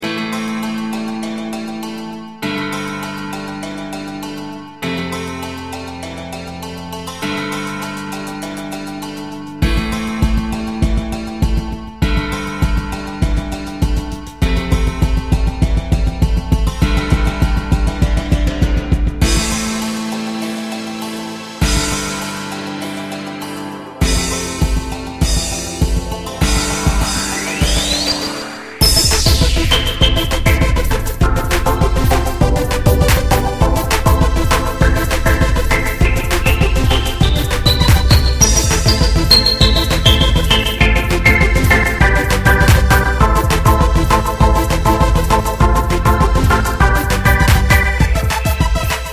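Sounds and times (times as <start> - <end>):
oriental techno music: 0.0 - 49.1.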